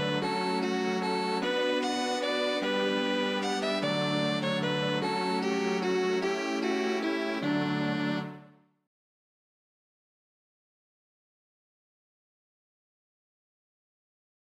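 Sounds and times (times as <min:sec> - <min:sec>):
waltz music: 0:00.0 - 0:08.5.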